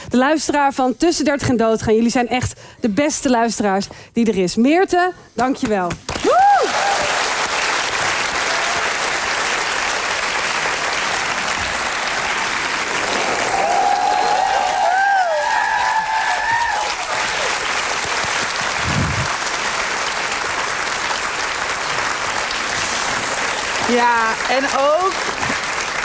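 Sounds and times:
speech: 0:00.1 - 0:06.9, 0:24.2 - 0:25.0
cheers and whistles: 0:06.2 - 0:07.3, 0:13.3 - 0:17.6
live audience applause: 0:06.2 - 0:26.0.

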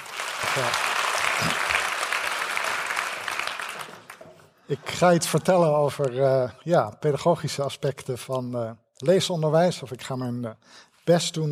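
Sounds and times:
audience applause: 0:00.0 - 0:04.5
speech: 0:00.6 - 0:01.6, 0:04.7 - 0:11.5.

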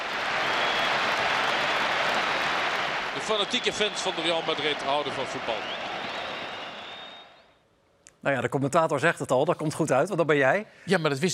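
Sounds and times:
stadium applause: 0:00.0 - 0:07.5
speech: 0:03.3 - 0:05.9, 0:08.2 - 0:11.3.

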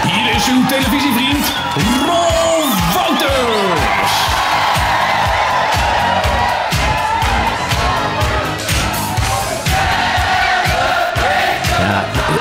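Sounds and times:
applause: 0:00.0 - 0:09.7
laughter: 0:00.0 - 0:12.3
studio audience cheering: 0:00.0 - 0:12.3.

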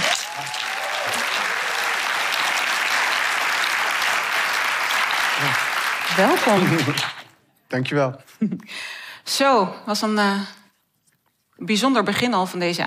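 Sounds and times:
faint voices and cheers: 0:00.0 - 0:02.4
audience applause: 0:00.0 - 0:07.3
laughter: 0:06.2 - 0:07.2
speech: 0:06.2 - 0:10.6, 0:11.6 - 0:12.8.

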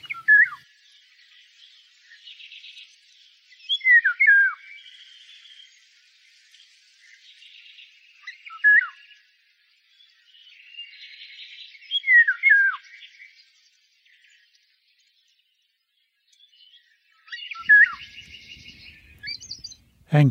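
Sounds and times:
Eurasian golden oriole song: 0:00.0 - 0:00.6, 0:03.5 - 0:05.7, 0:07.1 - 0:09.2, 0:10.0 - 0:13.5, 0:16.3 - 0:19.8.

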